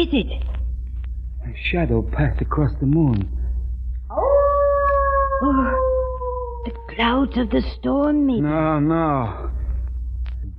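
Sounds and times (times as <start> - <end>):
speech: 0.0 - 0.6, 1.4 - 3.4, 5.4 - 5.9, 6.6 - 9.5
low rumble: 0.0 - 10.5
dog howling: 4.1 - 7.6.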